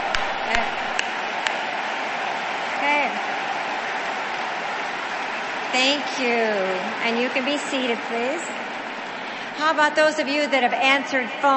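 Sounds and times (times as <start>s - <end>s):
audience applause: 0.0s - 9.9s
speech: 5.8s - 8.7s, 9.6s - 11.5s.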